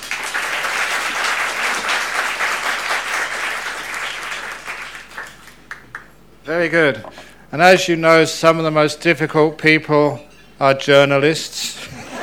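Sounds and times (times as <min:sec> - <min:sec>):
audience clapping to welcome a speaker at a talk: 0:00.0 - 0:06.2
speech: 0:06.5 - 0:11.8.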